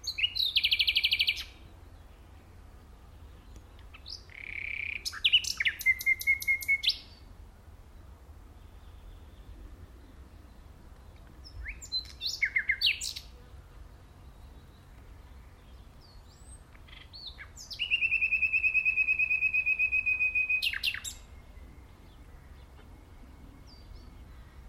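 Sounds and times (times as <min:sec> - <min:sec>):
Common nightingale song: 0:00.0 - 0:24.6.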